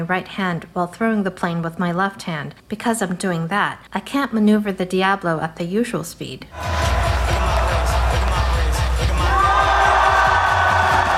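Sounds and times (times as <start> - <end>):
speech: 0.0 - 7.0
cheering and scattered whoops: 6.6 - 11.1
large crowd applause after a performance: 6.6 - 11.1.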